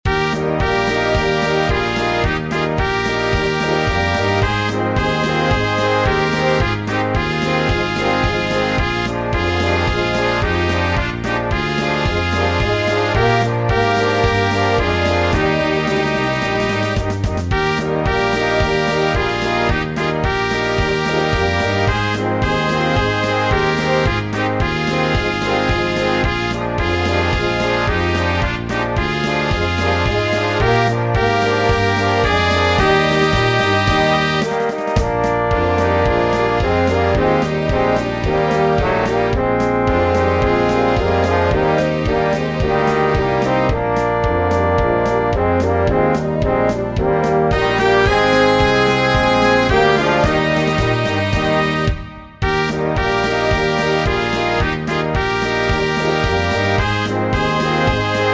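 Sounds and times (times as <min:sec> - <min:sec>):
music: 0:00.0 - 0:58.3.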